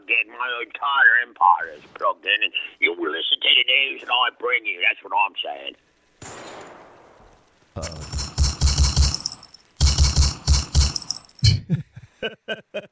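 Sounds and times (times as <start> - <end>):
speech: 0.3 - 6.4, 7.8 - 8.1, 12.2 - 12.8
gunfire from a weapon: 7.9 - 11.3
laughter: 11.6 - 12.8.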